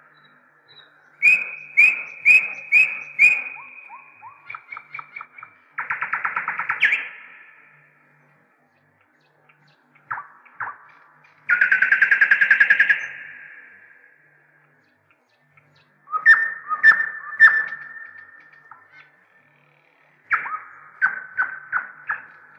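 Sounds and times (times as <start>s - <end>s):
nightingale song of whip notes and pulsed trills: 0.0s - 22.5s.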